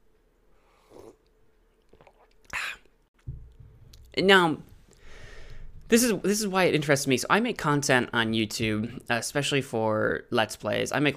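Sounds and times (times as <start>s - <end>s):
person sipping coffee: 0.6s - 3.0s
speech: 4.2s - 4.7s, 5.9s - 11.1s.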